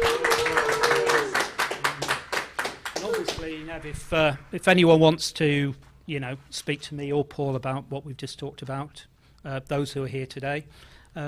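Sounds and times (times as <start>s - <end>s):
audience applause: 0.0s - 4.4s
speech: 3.4s - 11.2s.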